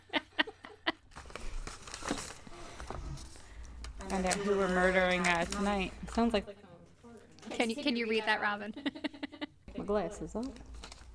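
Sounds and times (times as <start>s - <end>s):
paper envelope being ripped open: 1.1s - 3.3s, 4.0s - 6.2s, 10.4s - 11.1s
speech: 4.1s - 6.6s, 7.6s - 9.0s, 9.9s - 10.7s.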